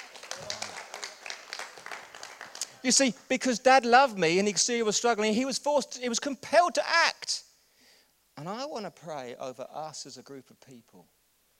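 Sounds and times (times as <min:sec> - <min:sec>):
crowd applauding: 0:00.0 - 0:03.0
speech: 0:02.8 - 0:07.5, 0:08.4 - 0:11.2.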